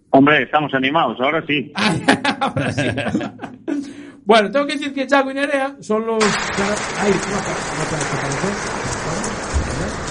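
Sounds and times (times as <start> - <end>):
speech: 0.2 - 9.4
laughter: 1.8 - 4.2, 6.2 - 10.0
audience applause at a rally event: 6.2 - 10.0.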